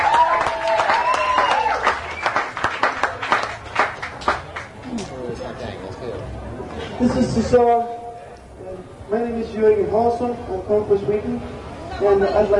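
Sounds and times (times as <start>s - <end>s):
audience applause: 0.0s - 4.8s
speech: 7.0s - 8.0s, 9.1s - 12.5s.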